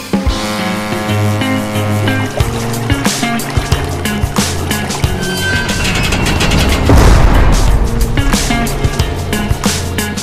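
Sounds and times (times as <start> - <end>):
boat engine drone: 0.3 - 10.2
boat hull thumping and splashing on waves: 0.3 - 10.2
rushing water: 0.3 - 10.2.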